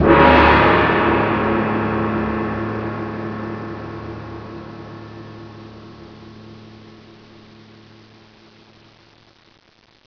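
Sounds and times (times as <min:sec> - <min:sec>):
gong: 0:00.0 - 0:08.7.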